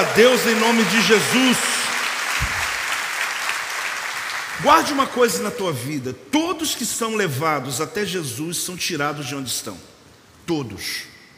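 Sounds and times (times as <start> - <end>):
speech: 0.0 - 1.8, 4.6 - 11.1
audience applause: 0.0 - 4.9.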